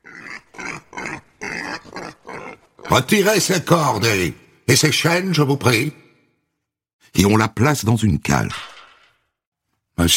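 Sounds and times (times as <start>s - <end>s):
sow squealing and grunting while dragged into a courtroom: 0.0s - 3.6s
speech: 2.9s - 6.0s, 7.1s - 8.7s, 10.0s - 10.1s.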